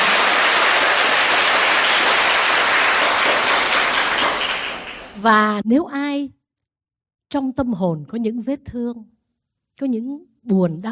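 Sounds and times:
audience applauding at a Buddhist dharma talk: 0:00.0 - 0:05.2
speech: 0:05.2 - 0:06.4, 0:07.3 - 0:09.2, 0:09.8 - 0:10.9.

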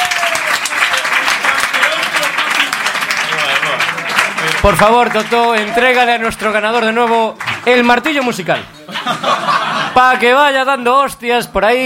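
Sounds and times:
audience applause: 0:00.0 - 0:08.4
speech: 0:04.6 - 0:09.4, 0:10.0 - 0:11.8
laughter: 0:08.8 - 0:10.2.

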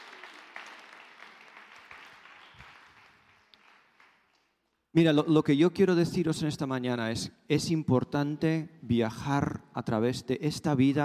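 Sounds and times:
audience applause: 0:00.0 - 0:04.4
speech: 0:05.0 - 0:11.0.

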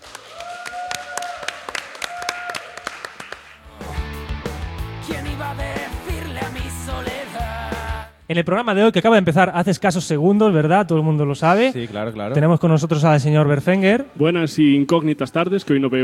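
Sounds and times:
scattered audience claps at a live show in the Faculty of Computer Science in A Coruña: 0:00.0 - 0:04.0
loud music: 0:03.6 - 0:08.2
speech: 0:08.3 - 0:16.0.

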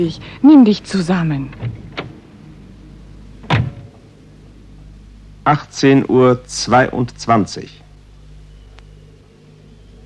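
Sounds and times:
speech: 0:00.0 - 0:01.8, 0:05.5 - 0:07.8
car arriving and idling: 0:00.0 - 0:10.0
car door shutting: 0:01.5 - 0:02.2, 0:03.4 - 0:04.0.

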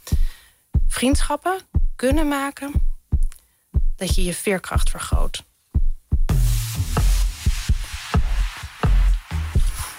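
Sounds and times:
human heartbeat: 0:00.0 - 0:09.9
speech: 0:01.0 - 0:02.9, 0:04.0 - 0:05.5.

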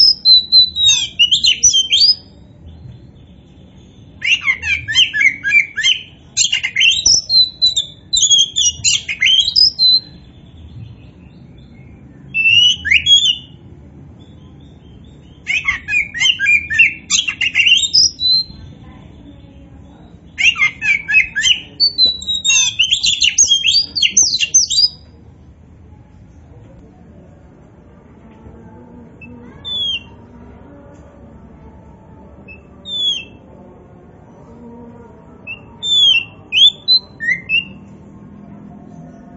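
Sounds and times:
Oriental magpie-robin trills and whistles: 0:00.0 - 0:02.3, 0:03.8 - 0:10.2, 0:12.3 - 0:13.5, 0:15.2 - 0:18.6, 0:20.2 - 0:25.0, 0:29.4 - 0:30.2, 0:32.5 - 0:33.4, 0:35.5 - 0:37.8.

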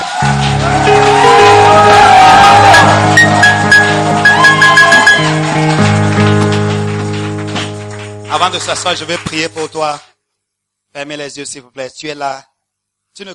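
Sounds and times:
church congregation cheering during a French-language worship service: 0:00.0 - 0:06.8
music: 0:00.0 - 0:10.0
speech: 0:08.5 - 0:10.2, 0:10.9 - 0:12.5, 0:13.2 - 0:13.3.

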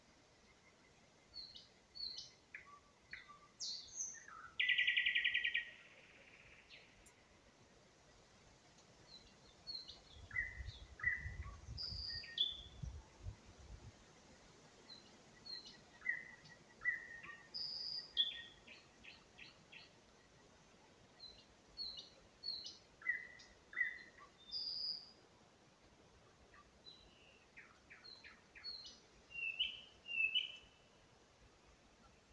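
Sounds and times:
background hiss: 0:00.0 - 0:32.3
nightingale singing: 0:01.3 - 0:07.2, 0:09.1 - 0:13.3, 0:14.9 - 0:20.0, 0:21.2 - 0:25.2, 0:26.6 - 0:30.9.

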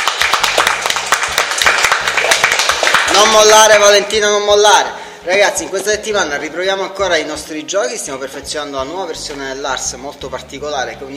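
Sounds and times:
applause: 0:00.0 - 0:03.8
speech: 0:03.2 - 0:11.1.

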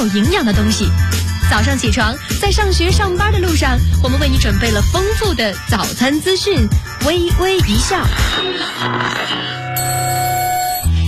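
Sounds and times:
speech: 0:00.0 - 0:09.6
alarm clock ringing with a bright metallic tone: 0:09.8 - 0:11.0.

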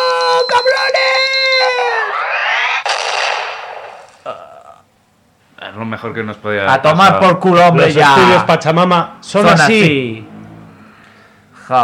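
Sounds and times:
rising whistle tone: 0:00.0 - 0:03.9
bomb exploding in a comedy sketch: 0:01.8 - 0:04.3
speech: 0:05.8 - 0:10.3, 0:11.7 - 0:11.8.

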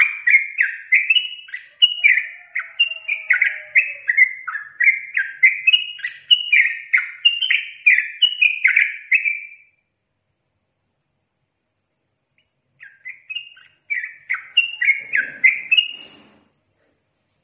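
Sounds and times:
yellow-vented bulbul bubbly song: 0:00.0 - 0:09.7, 0:12.8 - 0:16.3.

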